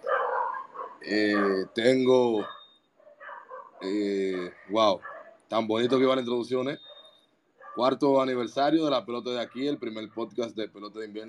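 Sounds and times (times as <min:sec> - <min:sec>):
dog barking: 0:00.0 - 0:06.2, 0:06.8 - 0:08.0, 0:09.4 - 0:10.4
speech: 0:01.0 - 0:02.6, 0:03.8 - 0:06.9, 0:07.8 - 0:11.2.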